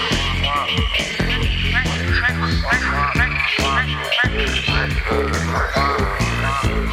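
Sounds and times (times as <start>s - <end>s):
frog calls: 0.0s - 6.9s.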